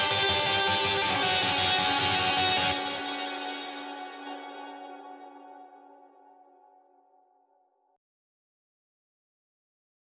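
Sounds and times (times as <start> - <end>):
guitar: 0.0 - 7.2.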